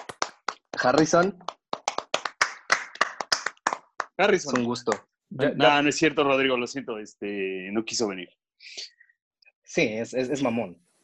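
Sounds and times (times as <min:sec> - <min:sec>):
small group hand clapping: 0:00.0 - 0:05.1
speech: 0:00.8 - 0:01.5, 0:04.2 - 0:08.9, 0:09.8 - 0:10.8.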